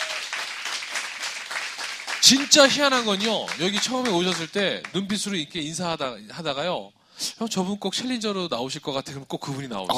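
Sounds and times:
audience applause: 0:00.0 - 0:05.0
speech: 0:02.2 - 0:09.9.

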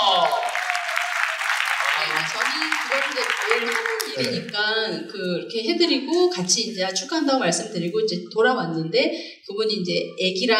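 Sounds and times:
excited voices calling out: 0:00.0 - 0:04.6
crowd clapping: 0:00.0 - 0:04.9
speech: 0:02.3 - 0:10.5.

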